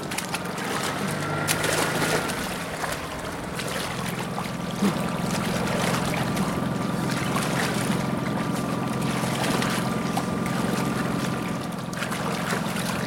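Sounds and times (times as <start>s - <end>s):
motorboat engine droning: 0.0s - 13.0s
motorboat propeller churning and splashing water: 0.0s - 13.0s.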